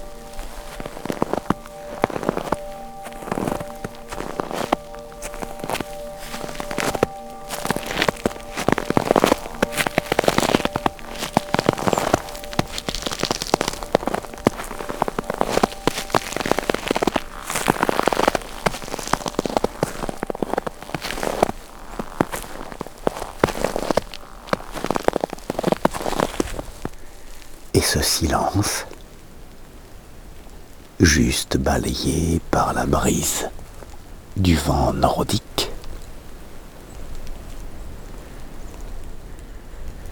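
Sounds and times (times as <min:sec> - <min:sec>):
footsteps crunching on powder snow: 0:00.0 - 0:27.5
speech: 0:27.8 - 0:28.9, 0:31.0 - 0:33.6, 0:34.4 - 0:35.4.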